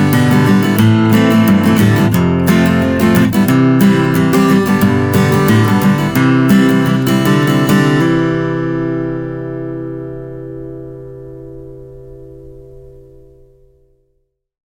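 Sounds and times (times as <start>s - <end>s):
guitar strumming: 0.0s - 14.1s.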